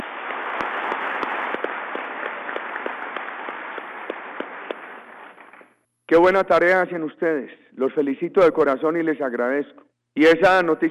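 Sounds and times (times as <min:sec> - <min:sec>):
audience applause: 0:00.0 - 0:05.1
speech: 0:06.1 - 0:10.8.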